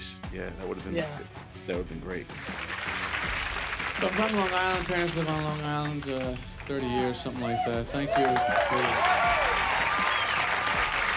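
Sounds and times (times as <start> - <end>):
speech: 0.4 - 2.7, 4.0 - 9.2
audience applause: 2.4 - 11.1.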